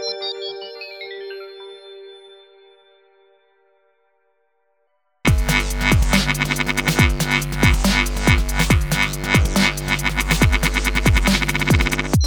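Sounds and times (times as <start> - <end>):
short blade sound: 5.3 - 12.1.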